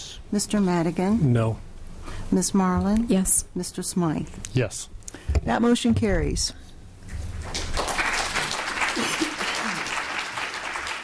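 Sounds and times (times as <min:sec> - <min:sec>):
speech: 0:00.3 - 0:01.7, 0:02.3 - 0:06.6
crowd applauding council vote: 0:07.4 - 0:11.0.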